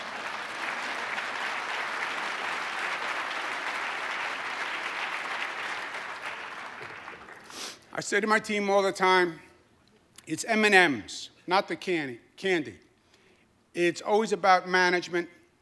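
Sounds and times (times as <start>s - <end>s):
audience clapping: 0.0s - 7.6s
speech: 8.0s - 9.5s, 10.3s - 12.9s, 13.8s - 15.4s.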